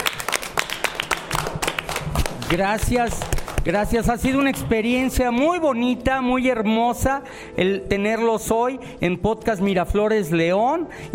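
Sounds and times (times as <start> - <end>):
applause from a small group: 0.0 - 5.2
speech: 2.5 - 11.1.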